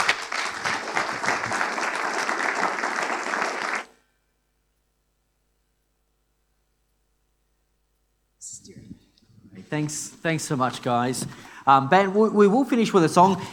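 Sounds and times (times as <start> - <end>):
audience applause: 0.0 - 4.0
speech: 9.7 - 13.5.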